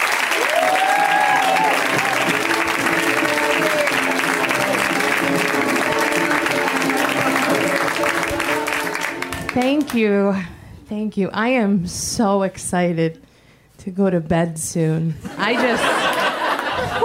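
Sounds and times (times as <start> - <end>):
audience applause for a comedian: 0.0 - 10.0
whoops and cheers: 0.3 - 2.6
speech: 9.6 - 16.2
laughter: 15.2 - 17.0.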